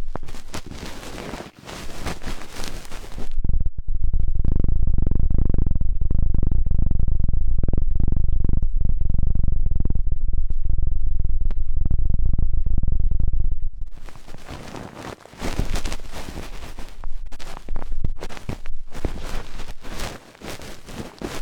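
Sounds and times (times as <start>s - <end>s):
ear cleaning scratching: 0.0s - 3.3s, 13.9s - 21.4s
helicopter-like pulsing rumble: 0.0s - 21.4s.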